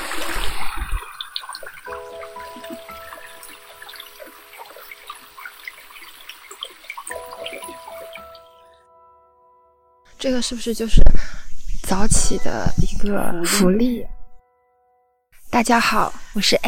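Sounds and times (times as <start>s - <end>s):
gently trickling flowing water: 0.0s - 9.0s
speech: 10.2s - 14.2s, 15.6s - 16.6s.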